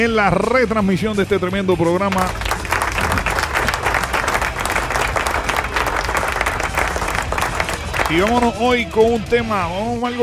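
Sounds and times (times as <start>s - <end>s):
speech: 0.0s - 2.6s, 8.1s - 10.2s
crowd applauding: 2.1s - 8.8s.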